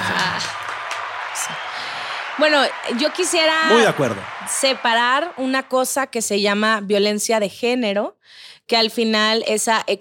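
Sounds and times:
audience applause: 0.0s - 6.2s
speech: 2.4s - 9.9s.

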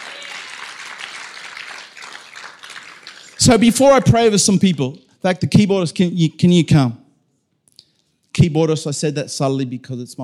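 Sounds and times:
audience hand clapping: 0.0s - 4.8s
speech: 3.4s - 7.0s, 8.4s - 10.2s.

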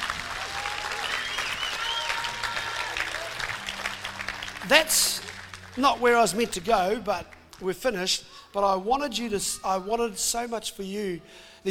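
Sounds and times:
crowd applauding: 0.0s - 7.6s
speech: 4.7s - 5.2s, 5.8s - 11.6s.

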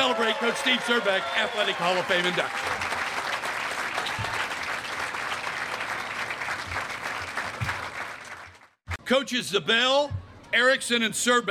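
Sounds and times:
speech: 0.0s - 3.0s, 9.1s - 11.4s
audience applause: 0.0s - 8.8s.

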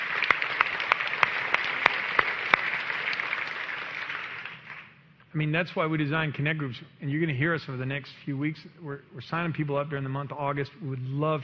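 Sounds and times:
audience applause: 0.0s - 4.9s
speech: 5.4s - 11.4s.

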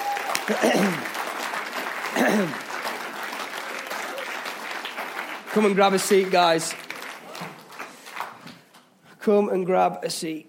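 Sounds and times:
brief voices or cheers: 0.0s - 0.6s
audience applause: 0.0s - 8.7s
speech: 0.5s - 1.2s, 2.1s - 2.7s, 5.6s - 6.8s, 9.2s - 10.4s.

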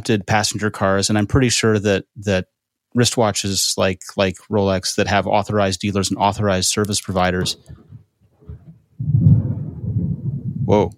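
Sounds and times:
speech: 0.0s - 8.0s, 10.7s - 10.9s
deep rolling thunder from an approaching rainstorm: 7.4s - 10.9s.

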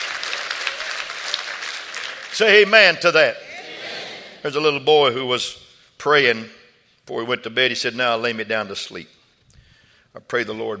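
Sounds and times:
audience clapping hands: 0.0s - 3.0s
speech: 2.4s - 3.4s, 4.4s - 9.2s, 10.1s - 10.7s.

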